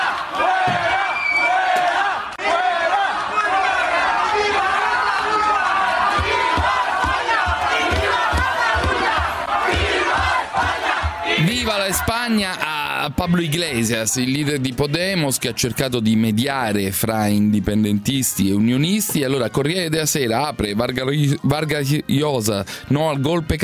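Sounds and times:
crowd shouting protest chants: 0.0s - 15.8s
speech: 11.9s - 23.6s.

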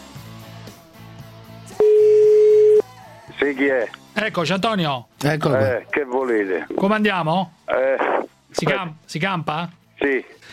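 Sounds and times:
telephone line ringing tone: 1.8s - 2.9s
speech: 3.6s - 10.5s.

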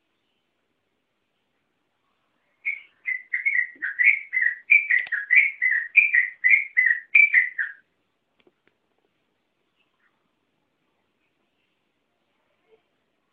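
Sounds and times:
Oriental magpie-robin singing whistled notes: 2.6s - 7.8s.

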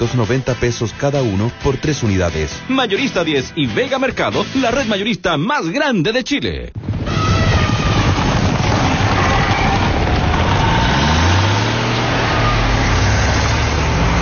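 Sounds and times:
speech: 0.0s - 6.8s
truck engine running: 8.1s - 14.1s.

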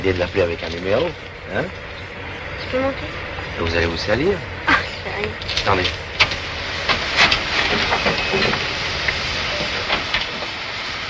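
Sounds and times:
speech: 0.0s - 2.0s, 2.7s - 6.1s
coal-fired steam locomotive hissing steam: 0.0s - 11.0s.

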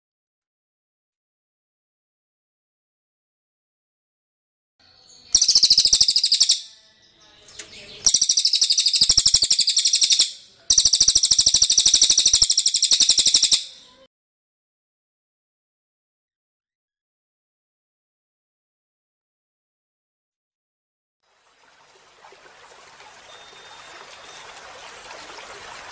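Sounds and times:
bird song of high sharp chirps: 4.8s - 14.1s, 23.0s - 24.8s.

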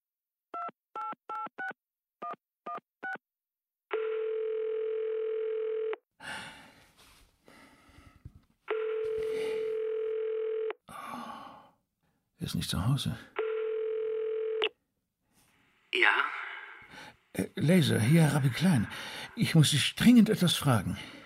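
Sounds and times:
telephone dial tone: 3.9s - 6.0s, 8.7s - 10.8s, 13.4s - 14.7s
speech: 12.5s - 13.4s, 17.4s - 21.2s.

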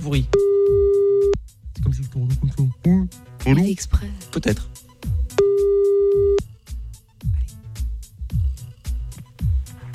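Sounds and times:
speech: 0.0s - 0.5s, 3.5s - 4.8s
low rhythmic thumping beat: 0.0s - 3.7s, 4.6s - 9.9s
telephone ringback tone on an outgoing call: 5.4s - 6.4s.

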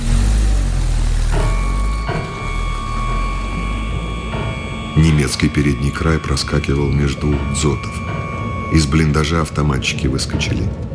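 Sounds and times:
car engine revving and driving off through gear changes: 0.0s - 5.0s
speech: 5.2s - 10.9s.

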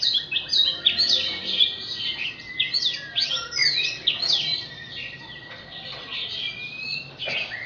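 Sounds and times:
Oriental magpie-robin singing: 0.0s - 7.6s.

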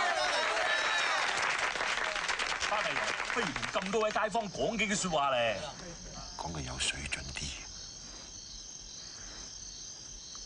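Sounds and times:
villagers applauding to welcome an official: 0.0s - 4.4s
speech: 3.4s - 7.4s.

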